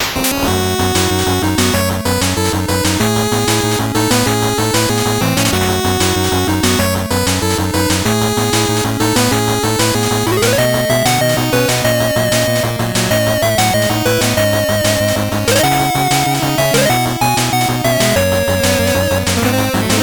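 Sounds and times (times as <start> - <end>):
fast 8-bit background music: 0.0 - 20.0.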